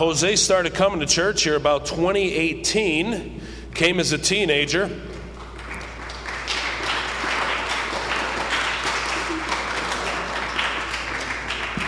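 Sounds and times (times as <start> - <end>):
speech: 0.0 - 5.1
audience clapping: 5.2 - 11.8.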